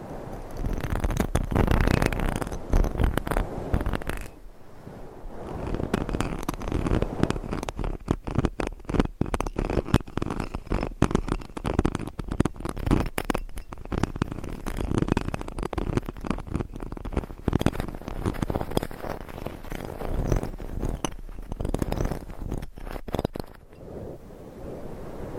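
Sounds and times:
fingernails scratching across a microphone: 0.3s - 4.4s, 5.4s - 23.6s.

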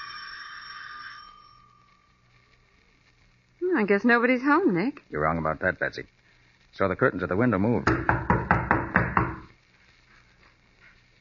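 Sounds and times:
speech: 3.8s - 8.3s
pounding on a door: 7.8s - 9.5s.

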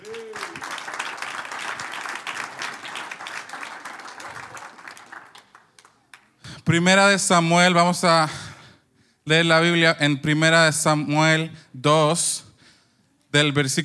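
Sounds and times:
audience applause for young people: 0.0s - 6.3s
speech: 6.7s - 8.4s, 9.3s - 12.4s, 13.3s - 13.8s.

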